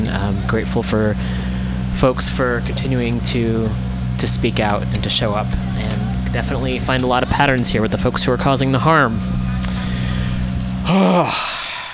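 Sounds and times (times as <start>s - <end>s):
steady hum: 0.0s - 11.9s
speech: 0.1s - 1.4s, 2.0s - 9.4s, 10.9s - 11.6s
deep breath: 1.2s - 1.9s, 9.5s - 10.6s, 11.3s - 11.9s.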